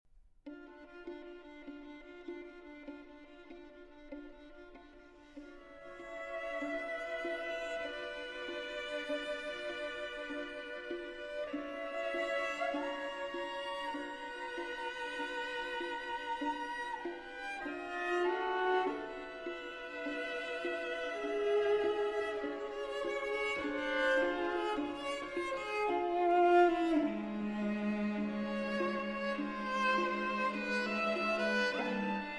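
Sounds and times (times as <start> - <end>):
string quartet: 0.4 - 32.3.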